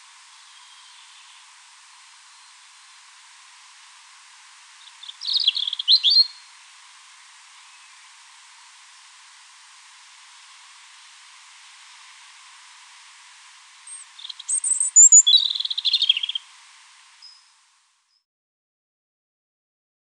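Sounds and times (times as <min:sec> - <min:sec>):
European robin singing high phrase: 0:04.8 - 0:06.4, 0:13.9 - 0:16.4.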